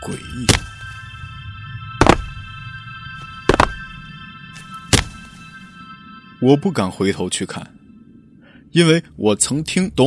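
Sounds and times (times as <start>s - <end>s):
speech: 0.0s - 0.8s, 6.4s - 7.8s, 8.7s - 10.0s
low rumble: 0.0s - 10.0s
heavy footsteps: 2.0s - 2.5s, 3.2s - 4.0s, 4.6s - 5.4s.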